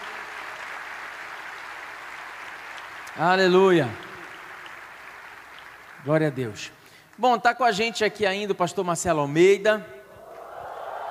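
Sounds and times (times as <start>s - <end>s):
audience applauding: 0.0s - 7.2s, 10.2s - 11.0s
speech: 3.2s - 4.0s, 6.0s - 10.0s.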